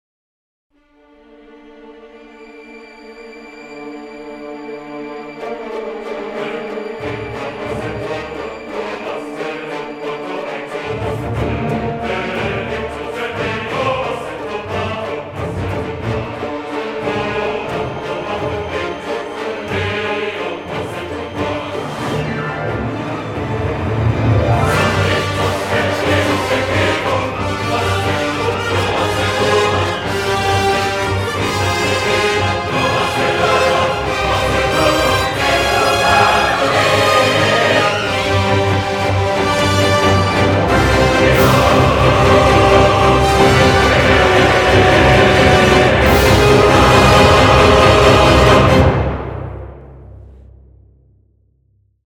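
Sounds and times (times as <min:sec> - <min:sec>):
strings: 0:00.9 - 0:50.1.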